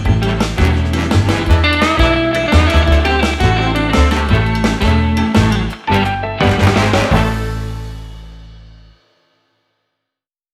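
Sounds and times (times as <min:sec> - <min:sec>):
cheerful entertainment music with dual solo: 0:00.0 - 0:08.4.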